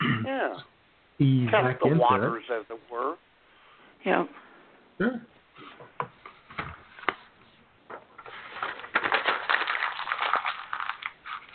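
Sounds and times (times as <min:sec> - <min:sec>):
speech: 0:00.4 - 0:03.3, 0:04.0 - 0:04.4, 0:05.0 - 0:05.3
piece of paper being wadded up: 0:07.9 - 0:11.5.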